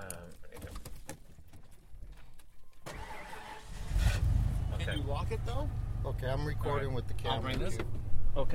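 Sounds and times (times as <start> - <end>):
truck engine starting: 2.8 - 8.0
speech: 5.0 - 8.5.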